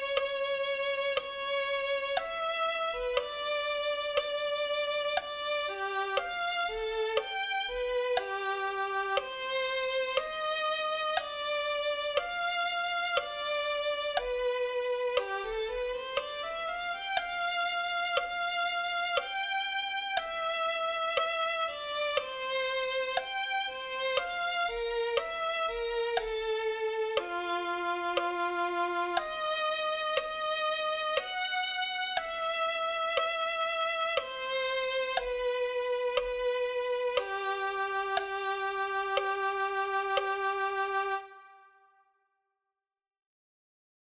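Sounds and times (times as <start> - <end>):
violin playing a hymn: 0.0 - 42.0.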